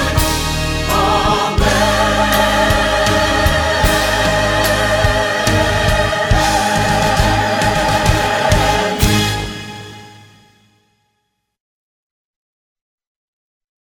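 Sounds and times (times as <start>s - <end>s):
vocals: 0.0s - 10.4s.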